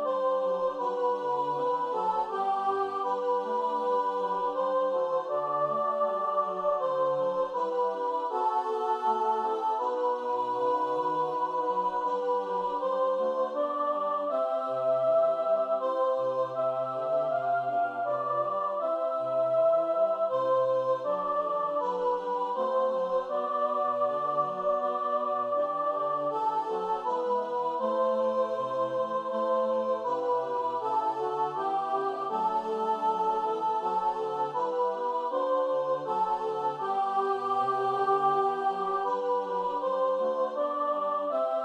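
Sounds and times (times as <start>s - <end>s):
choir singing with emphasized soprano: 0.0s - 41.6s.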